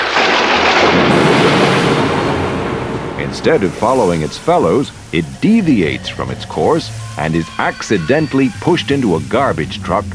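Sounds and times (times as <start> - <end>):
thunder clap from lightning strike: 0.0 - 7.4
speech: 3.3 - 10.1.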